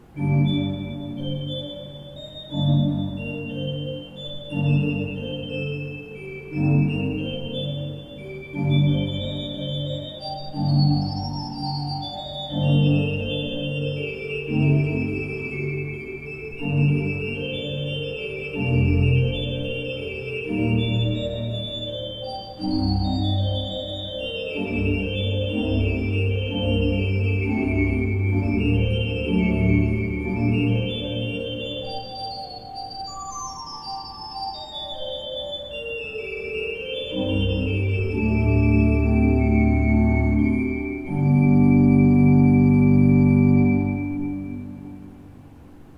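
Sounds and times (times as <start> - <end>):
used Beckerath pipe organ: 0.0 - 45.9.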